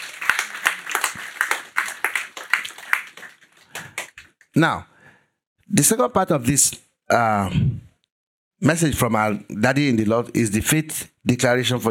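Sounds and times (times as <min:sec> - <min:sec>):
audience applause: 0:00.0 - 0:04.3
speech: 0:04.6 - 0:04.9, 0:05.7 - 0:07.7, 0:08.6 - 0:11.8.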